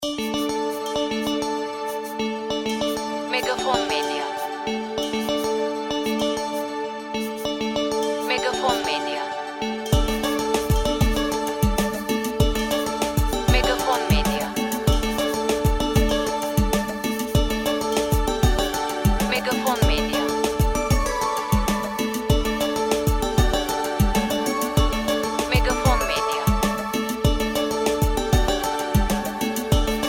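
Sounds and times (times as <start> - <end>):
switchboard music: 0.0 - 30.0.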